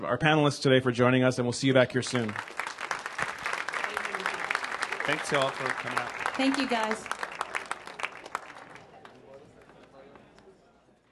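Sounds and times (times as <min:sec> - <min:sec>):
speech: 0:00.0 - 0:02.6, 0:05.1 - 0:07.1
audience applause: 0:02.0 - 0:10.4.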